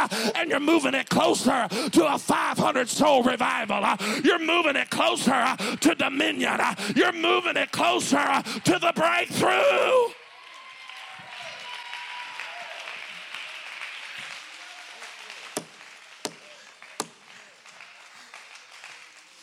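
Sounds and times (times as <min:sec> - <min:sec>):
speech: 0:00.1 - 0:10.2
audience clapping hands: 0:03.8 - 0:07.0, 0:10.2 - 0:19.4.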